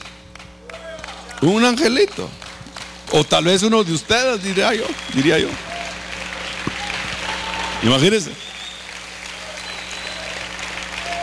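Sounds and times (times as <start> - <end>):
applause: 0.0 - 11.2
speech: 1.4 - 2.4, 3.1 - 5.7, 7.8 - 8.4.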